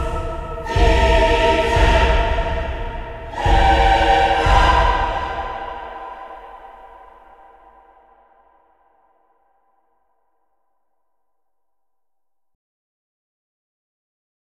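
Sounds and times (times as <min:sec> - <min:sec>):
choir singing: 0:00.0 - 0:08.0.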